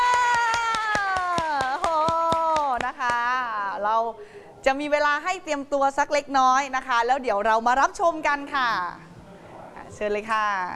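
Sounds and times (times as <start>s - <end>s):
audience clapping: 0.0s - 3.3s
speech: 3.8s - 9.1s, 9.9s - 10.7s.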